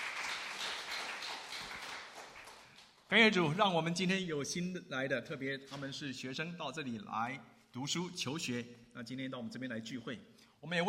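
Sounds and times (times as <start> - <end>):
crowd applause: 0.0 - 2.9
speech: 3.1 - 10.8.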